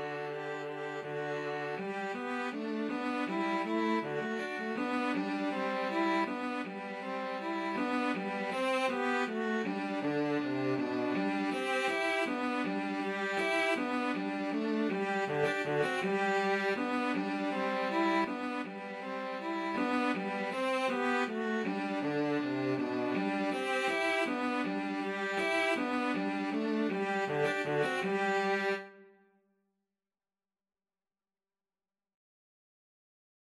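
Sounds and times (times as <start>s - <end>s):
cello: 0.0s - 29.0s
violins: 0.0s - 29.0s.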